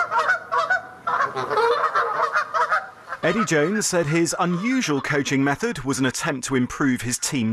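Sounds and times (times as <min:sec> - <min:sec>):
flock of geese honking: 0:00.0 - 0:05.7
speech: 0:03.2 - 0:07.5.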